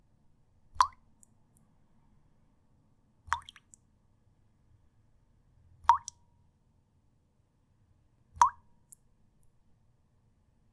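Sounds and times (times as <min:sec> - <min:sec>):
water drops on a tea bowl: 0:00.7 - 0:01.0, 0:03.3 - 0:03.8, 0:05.8 - 0:06.2, 0:08.4 - 0:08.7.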